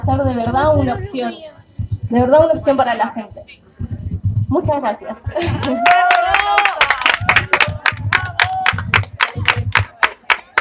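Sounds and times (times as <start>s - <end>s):
speech: 0.0s - 1.5s, 2.1s - 3.6s, 4.5s - 6.4s
audience applause: 5.4s - 10.6s.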